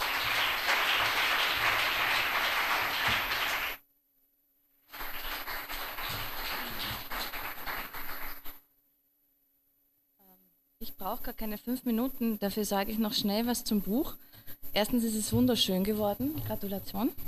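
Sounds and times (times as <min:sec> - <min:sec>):
audience applause: 0:00.0 - 0:03.8, 0:04.9 - 0:08.6
speech: 0:11.0 - 0:14.2, 0:14.8 - 0:17.2.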